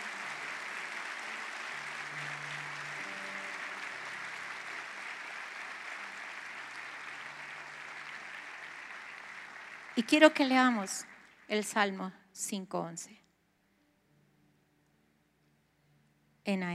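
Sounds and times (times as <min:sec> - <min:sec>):
applause: 0:00.0 - 0:12.0
speech: 0:10.0 - 0:13.2, 0:16.5 - 0:16.7.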